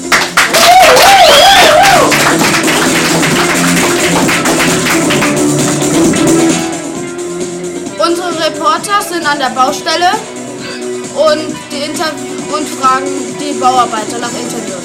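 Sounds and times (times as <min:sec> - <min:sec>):
studio guests applauding: 0:00.0 - 0:06.4
speech: 0:09.1 - 0:10.4, 0:11.2 - 0:14.6.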